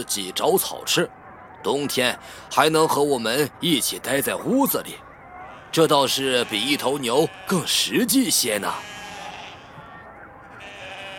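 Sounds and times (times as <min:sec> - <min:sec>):
speech: 0:00.0 - 0:05.1, 0:05.7 - 0:09.0
sheep bleating at a country market: 0:05.3 - 0:09.8, 0:10.5 - 0:11.1.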